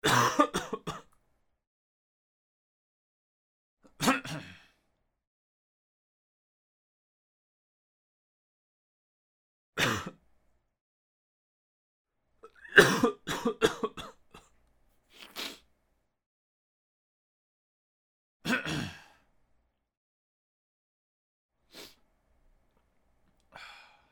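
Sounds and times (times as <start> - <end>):
man coughing: 0.0 - 1.0, 9.8 - 10.1, 12.6 - 14.2, 18.5 - 19.0.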